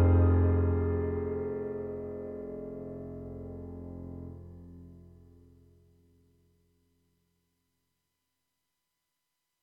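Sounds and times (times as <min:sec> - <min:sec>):
cinematic piano on a synthesizer: 0:00.0 - 0:06.2.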